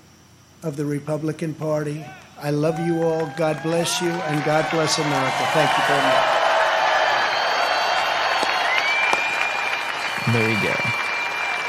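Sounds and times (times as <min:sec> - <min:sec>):
speech: 0:00.6 - 0:06.3, 0:10.3 - 0:11.0
convention crowd cheering: 0:02.0 - 0:11.6
convention crowd applause: 0:02.7 - 0:11.6.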